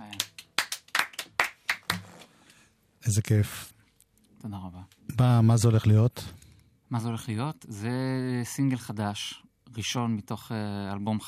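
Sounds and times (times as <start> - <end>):
hand clapping: 0.0 - 2.3
speech: 3.1 - 3.7, 4.4 - 11.2.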